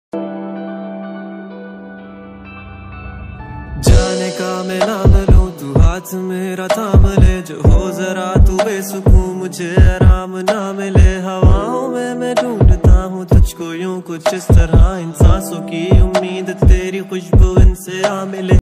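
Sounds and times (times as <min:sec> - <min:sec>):
Hindi rap ringtone: 0:03.8 - 0:18.6.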